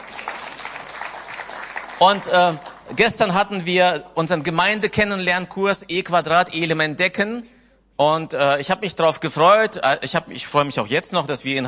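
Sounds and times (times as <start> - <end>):
audience applause: 0.0 - 3.0
speech: 2.0 - 11.6.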